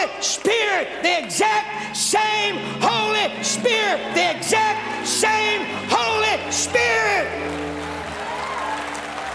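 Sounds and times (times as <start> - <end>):
speech: 0.1 - 7.9
faint sustained musical tones: 1.7 - 9.3
crowd applause: 5.7 - 9.3.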